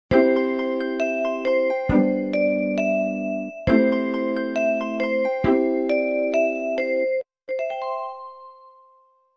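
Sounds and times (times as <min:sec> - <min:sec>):
background music: 0:00.1 - 0:08.8.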